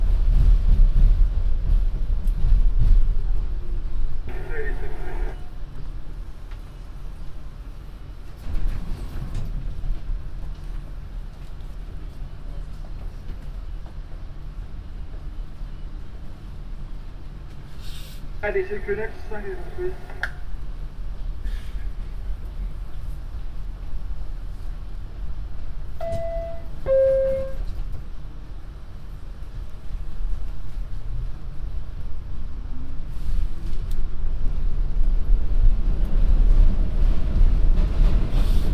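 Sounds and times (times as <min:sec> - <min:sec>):
MTA train moving: 0:00.0 - 0:38.7
voices: 0:18.4 - 0:20.4
short electronic chime or tone: 0:26.0 - 0:27.6.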